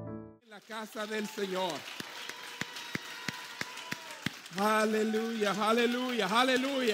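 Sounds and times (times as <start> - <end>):
audience clapping in a steady brisk rhythm: 0.4 - 6.9
speech: 0.6 - 2.3, 4.5 - 6.9.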